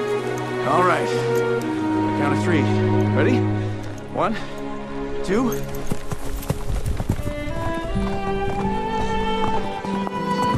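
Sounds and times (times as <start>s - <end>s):
speech: 0.6s - 3.6s, 4.2s - 4.6s, 5.3s - 6.0s
horse galloping as someone rides: 5.5s - 10.5s.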